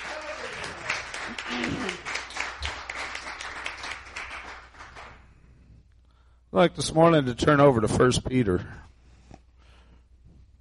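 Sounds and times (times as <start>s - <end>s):
audience cheering and clapping: 0.0s - 5.1s
speech: 6.6s - 8.9s.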